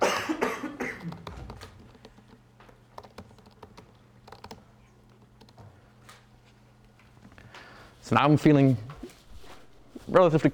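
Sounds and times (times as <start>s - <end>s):
person coughing: 0.0s - 1.4s
computer keyboard typing during a live coding demo: 1.0s - 5.8s
speech: 8.1s - 8.9s, 10.1s - 10.5s.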